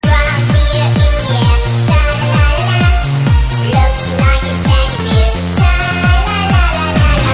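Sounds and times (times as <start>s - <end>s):
techno music: 0.0s - 7.3s.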